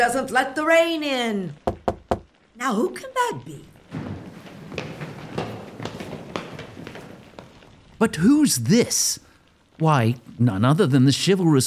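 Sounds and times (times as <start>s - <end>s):
speech: 0.0s - 1.6s, 2.6s - 3.8s, 8.0s - 11.6s
low steady hiss: 0.0s - 11.6s
sharp knocking on a door: 1.6s - 2.4s.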